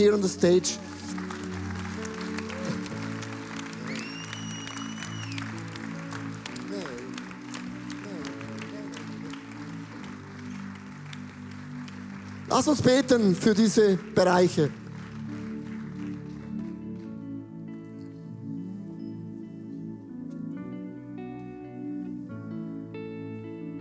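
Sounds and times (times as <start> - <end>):
speech: 0.0 - 1.2, 12.5 - 14.8
audience applause: 0.0 - 17.1.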